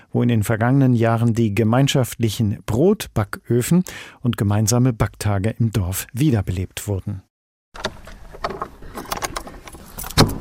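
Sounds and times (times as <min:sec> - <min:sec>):
speech: 0:00.1 - 0:08.0
keys jangling and scraping in the lock of an old bakehouse door: 0:07.8 - 0:10.3.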